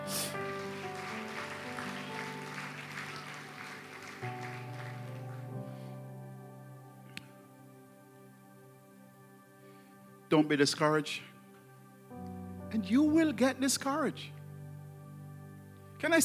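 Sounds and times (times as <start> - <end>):
audience hand clapping: 0.0 - 5.8
speech: 10.3 - 11.3, 12.8 - 14.4, 16.0 - 16.2.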